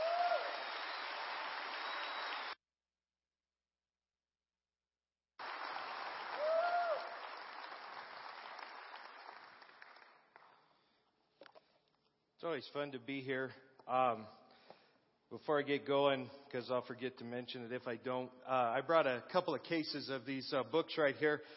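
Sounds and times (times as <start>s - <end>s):
church congregation at a Biker Sunday service clapping to welcome missionaries: 0.0s - 2.6s, 5.4s - 10.8s
speech: 12.4s - 14.4s, 15.3s - 21.5s.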